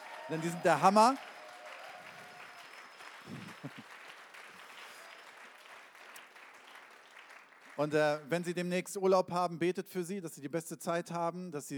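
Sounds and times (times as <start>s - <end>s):
audience applause: 0.0s - 8.3s
speech: 0.3s - 1.3s, 7.8s - 11.7s.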